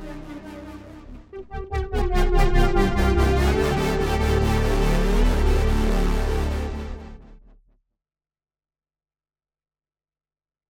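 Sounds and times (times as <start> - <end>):
synthesizer with LFO-modulated filter cutoff and delay effect: 0.0 - 7.5.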